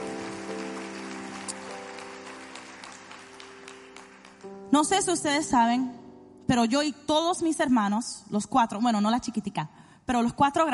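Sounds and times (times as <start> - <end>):
crowd clapping: 0.0 - 4.7
sustained keyboard chord: 0.0 - 6.7
speech: 4.7 - 10.7.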